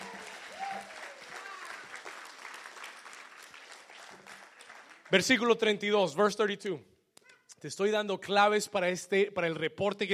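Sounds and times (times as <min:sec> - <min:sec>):
audience applauding: 0:00.0 - 0:05.3
speech: 0:05.1 - 0:06.9, 0:07.6 - 0:10.1.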